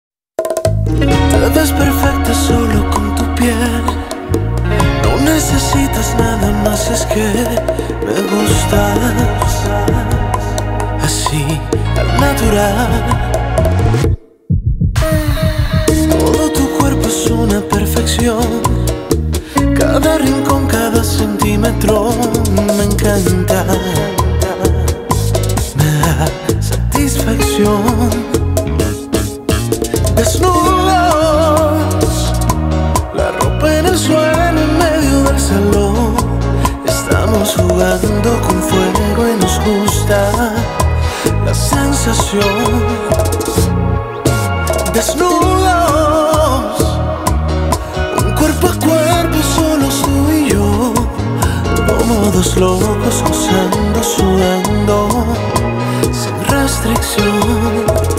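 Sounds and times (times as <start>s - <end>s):
bachata music: 0.4s - 58.1s.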